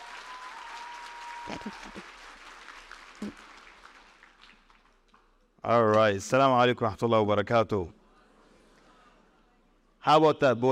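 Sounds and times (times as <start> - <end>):
audience applause: 0.0 - 5.0
speech: 1.5 - 2.4, 5.6 - 8.0, 10.0 - 10.6.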